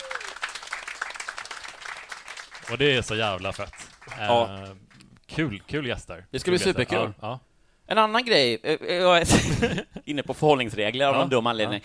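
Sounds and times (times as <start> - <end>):
crowd applauding: 0.0 - 5.0
speech: 2.7 - 11.8.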